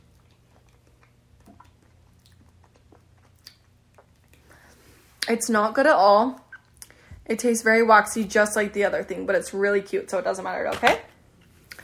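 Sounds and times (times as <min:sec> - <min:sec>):
person biting and chewing a strawberry swirl Japanese candy ice cream cone: 0:00.0 - 0:04.8
speech: 0:05.3 - 0:06.4, 0:07.3 - 0:11.1.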